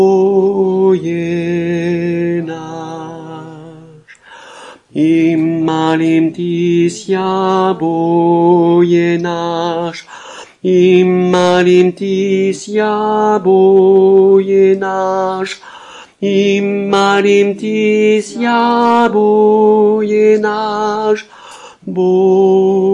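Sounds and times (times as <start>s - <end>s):
soprano singing chorale: 0.0s - 4.1s, 4.8s - 22.9s.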